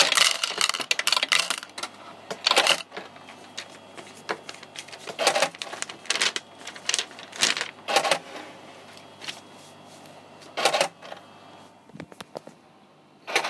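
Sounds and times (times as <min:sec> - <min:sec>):
coin counting machine: 0:00.0 - 0:01.8, 0:02.4 - 0:03.0, 0:04.6 - 0:08.3, 0:10.6 - 0:11.2, 0:13.3 - 0:13.4.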